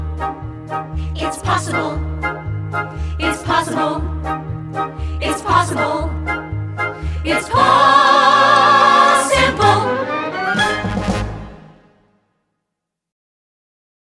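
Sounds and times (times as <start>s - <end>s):
vocals: 0.9s - 11.3s.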